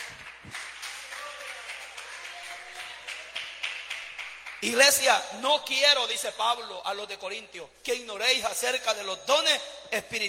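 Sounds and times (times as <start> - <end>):
audience applause: 0.0 - 4.7
speech: 4.6 - 10.2.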